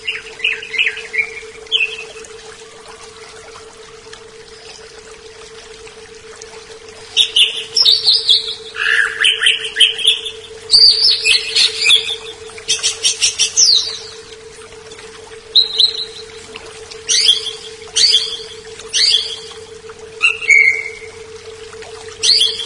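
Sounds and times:
leafbird singing varied phrases: 0.0 - 2.1, 7.2 - 14.3, 15.5 - 16.4, 17.0 - 19.6, 20.2 - 21.1, 22.2 - 22.6.

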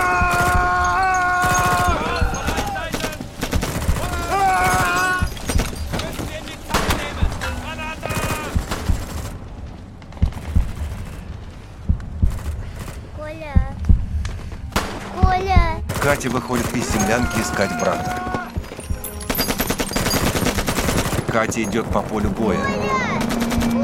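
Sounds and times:
people shouting: 0.0 - 8.7, 16.8 - 18.8, 22.5 - 23.8
gunfire in a war film battle scene: 0.0 - 13.2, 14.7 - 23.8
speech: 16.2 - 18.3, 21.3 - 23.8.

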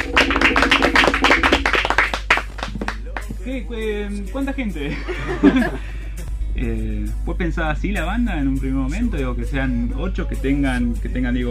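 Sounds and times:
audience applause: 0.0 - 3.3
speech: 3.5 - 6.0, 6.6 - 11.4
laughter: 4.7 - 6.2.

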